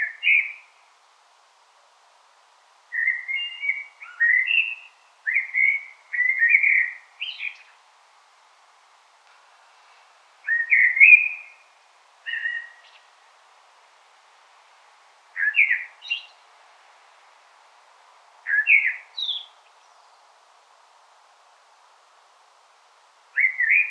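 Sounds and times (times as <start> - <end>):
common blackbird song: 0.0 - 0.7, 2.9 - 7.8, 10.4 - 11.7, 12.3 - 13.1, 15.4 - 16.4, 18.5 - 20.4, 23.4 - 23.8
faint hiss: 0.0 - 23.8.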